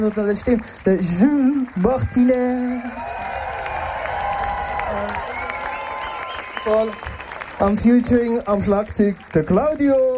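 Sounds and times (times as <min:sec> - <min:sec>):
speech: 0:00.0 - 0:03.2, 0:06.6 - 0:10.1
audience applause: 0:00.0 - 0:10.1
audience cheering: 0:01.9 - 0:08.3.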